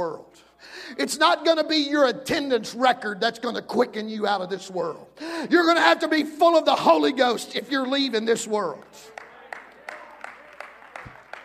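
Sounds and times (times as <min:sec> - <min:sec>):
speech: 0:00.0 - 0:09.2
smattering of audience applause: 0:08.8 - 0:11.4.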